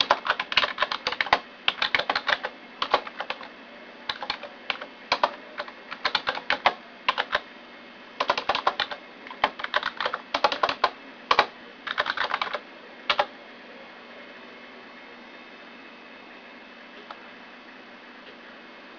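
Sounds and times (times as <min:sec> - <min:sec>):
typing: 0:00.0 - 0:03.5, 0:04.1 - 0:07.4, 0:08.2 - 0:13.3.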